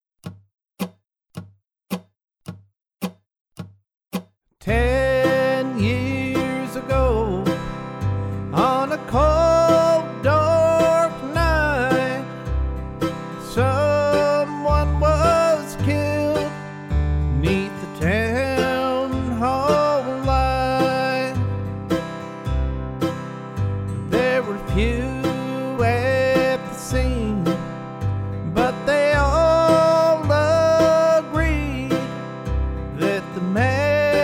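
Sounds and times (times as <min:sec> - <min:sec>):
person singing in the key of C: 0:04.6 - 0:07.8, 0:08.4 - 0:12.4, 0:13.4 - 0:16.6, 0:17.3 - 0:21.6, 0:24.0 - 0:27.7, 0:28.4 - 0:32.2, 0:32.9 - 0:34.2
backing track in the key of C: 0:04.6 - 0:34.2.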